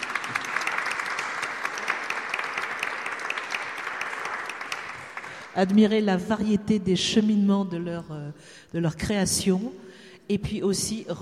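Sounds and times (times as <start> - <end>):
audience applause: 0.0 - 5.6
speech: 5.6 - 11.2.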